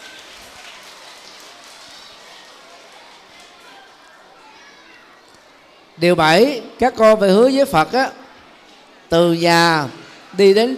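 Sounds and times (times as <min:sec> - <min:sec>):
loud round of applause by children: 0:00.0 - 0:04.8
speech: 0:06.0 - 0:08.2, 0:09.1 - 0:10.7.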